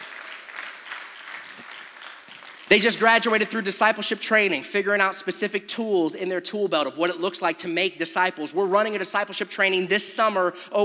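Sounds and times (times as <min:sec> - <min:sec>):
audience applause: 0:00.0 - 0:02.7
speech: 0:02.7 - 0:10.8.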